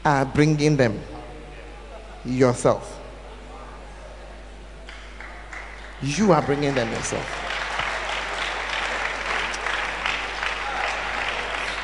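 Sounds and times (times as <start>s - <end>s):
speech: 0.0s - 1.2s, 2.2s - 3.0s, 6.0s - 7.4s
audience clapping: 4.8s - 11.8s.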